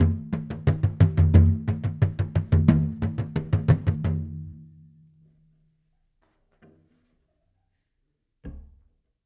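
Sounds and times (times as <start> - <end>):
Celtic bodhran drum: 0.0 - 4.6.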